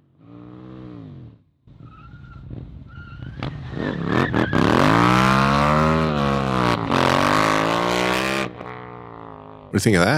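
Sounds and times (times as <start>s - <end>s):
motorcycle engine revving: 0.0s - 1.5s, 2.3s - 9.7s
tire squeal during a burnout: 1.7s - 6.6s
motorcycle tires skidding in a slide: 1.7s - 8.4s
speech: 3.7s - 4.4s, 9.7s - 10.1s.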